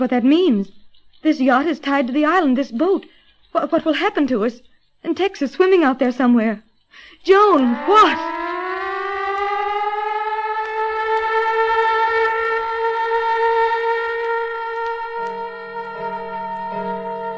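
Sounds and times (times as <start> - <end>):
speech: 0.0 - 8.4
loud location signal siren wailing: 7.3 - 17.3
low buzzy tone: 7.5 - 17.3.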